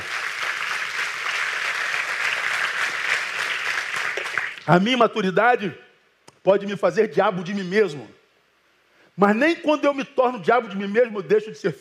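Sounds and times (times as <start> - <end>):
crowd clapping: 0.0 - 4.7
speech: 4.7 - 5.8, 6.4 - 8.2, 9.2 - 11.8.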